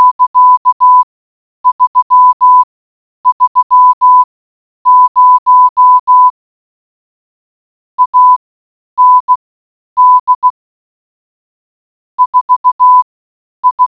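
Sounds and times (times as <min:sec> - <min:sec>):
morse code beeps: 0:00.0 - 0:01.0, 0:01.6 - 0:02.7, 0:03.3 - 0:04.3, 0:04.9 - 0:06.3, 0:08.0 - 0:08.4, 0:09.0 - 0:09.4, 0:10.0 - 0:10.6, 0:12.2 - 0:13.8.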